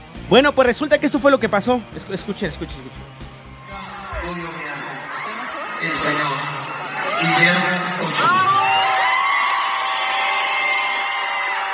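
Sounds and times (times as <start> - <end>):
speech: 0.3 - 3.2, 7.2 - 8.4
crowd cheering and whooping for Guillermo Ochoa of the Mexican national team: 3.1 - 11.7.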